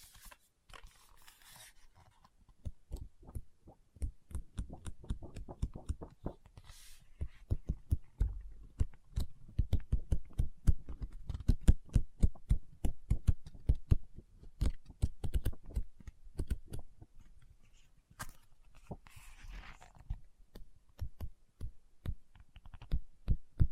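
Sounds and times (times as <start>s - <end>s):
fingers tapping on a book: 2.5s - 6.5s, 7.2s - 17.0s, 20.5s - 23.7s.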